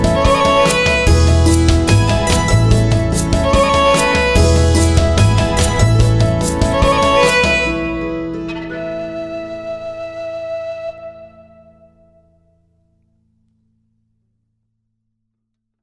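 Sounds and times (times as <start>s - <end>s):
instrumental music: 0.0s - 12.4s.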